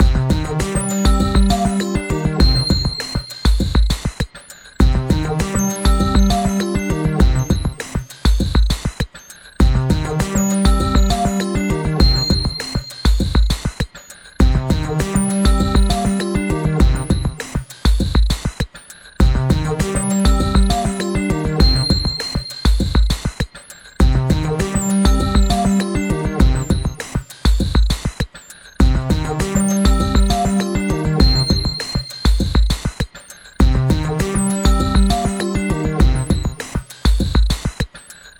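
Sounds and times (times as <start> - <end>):
music loop: 0.0 - 18.6, 19.2 - 37.9.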